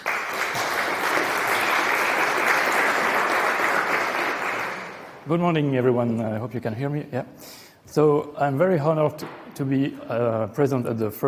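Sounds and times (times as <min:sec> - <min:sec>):
audience applause: 0:00.0 - 0:05.2
speech: 0:05.3 - 0:11.2.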